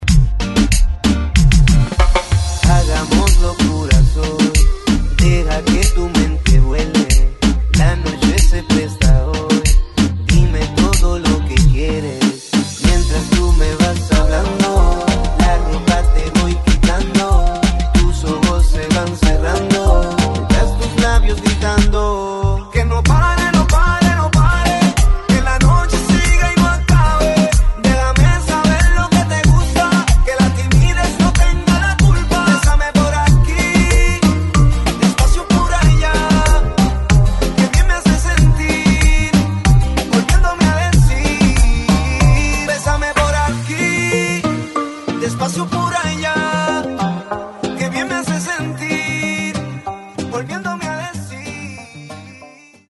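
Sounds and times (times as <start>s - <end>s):
extended music track: 0.0s - 52.9s.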